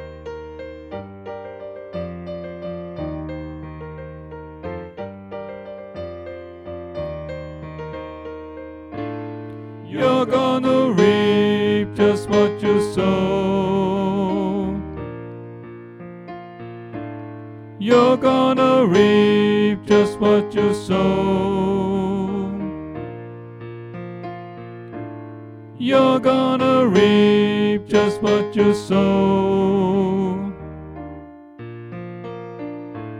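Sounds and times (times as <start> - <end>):
tenor singing: 9.8 - 15.1, 17.8 - 22.8, 25.8 - 30.7.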